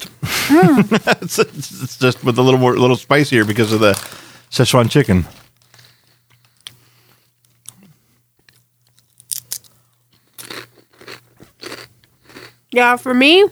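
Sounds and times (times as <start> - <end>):
laughter: 0.0 - 3.8
potato chips being chewed: 0.0 - 7.8, 8.4 - 13.0
low steady hum: 0.0 - 8.6
speech: 0.5 - 5.4, 12.7 - 13.5.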